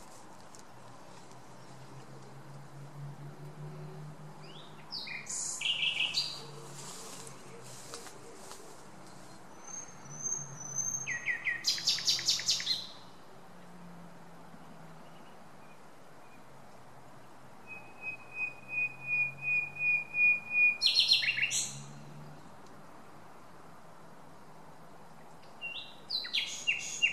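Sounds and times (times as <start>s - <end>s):
common nightingale singing: 4.4s - 13.1s, 17.6s - 22.0s, 25.4s - 27.1s.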